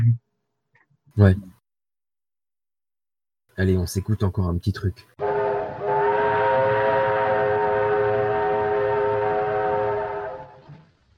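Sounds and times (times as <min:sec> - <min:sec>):
speech: 0:01.2 - 0:01.6, 0:03.6 - 0:05.2
steam train whistle as a train arrives in a film: 0:05.2 - 0:10.8.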